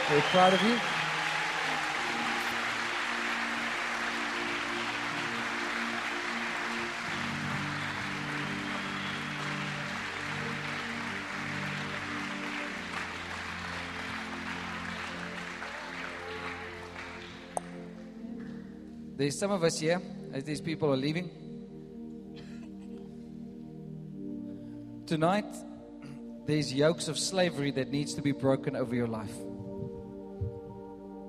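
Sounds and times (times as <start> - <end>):
audience applause: 0.0 - 17.8
speech: 0.1 - 1.0, 19.2 - 21.4, 25.1 - 25.7, 26.5 - 29.5.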